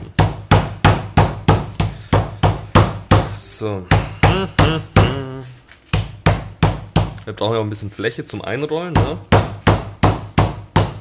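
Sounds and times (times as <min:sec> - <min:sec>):
mallet pounding chicken meat flat: 0:00.0 - 0:05.3, 0:05.9 - 0:07.2, 0:08.9 - 0:10.9
speech: 0:03.6 - 0:05.6, 0:07.2 - 0:09.6.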